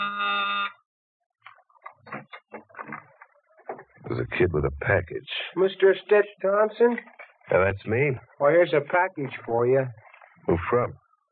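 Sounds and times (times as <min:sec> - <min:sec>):
door buzzer ringing: 0:00.0 - 0:00.9
speech: 0:04.1 - 0:11.0.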